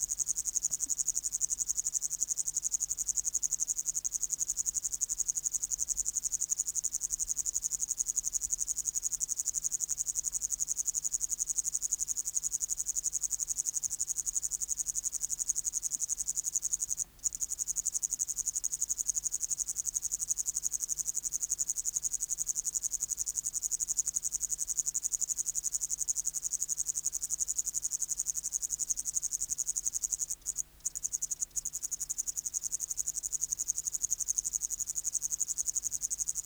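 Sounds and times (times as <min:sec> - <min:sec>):
upland green bush-cricket buzzing trill: 0:00.0 - 0:36.4.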